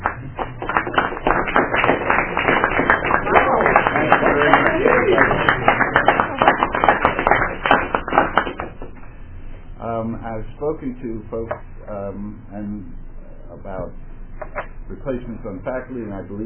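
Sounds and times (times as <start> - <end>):
applause: 0.0 - 9.0
speech: 10.7 - 16.4.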